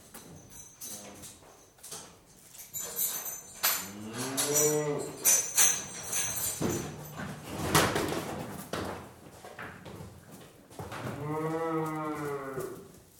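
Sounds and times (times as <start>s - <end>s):
clanking and bumping: 2.8s - 9.1s
cattle mooing: 11.1s - 12.9s.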